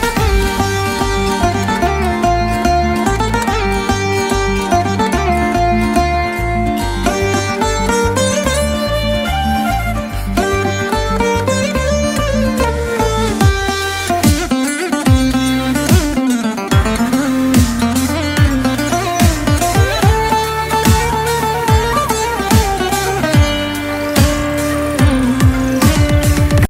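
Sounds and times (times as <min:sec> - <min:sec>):
instrumental background music: 0:00.0 - 0:26.6.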